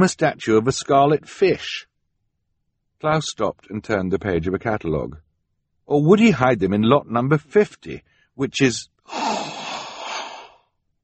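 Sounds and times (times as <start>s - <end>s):
speech: 0.0s - 1.9s, 3.0s - 5.2s, 5.9s - 9.5s
sharp gasp: 9.1s - 10.7s.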